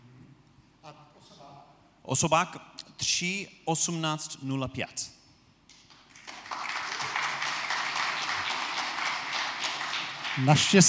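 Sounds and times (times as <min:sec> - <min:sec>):
speech: 0:02.0 - 0:05.2, 0:10.4 - 0:10.8
audience applause: 0:06.1 - 0:10.8.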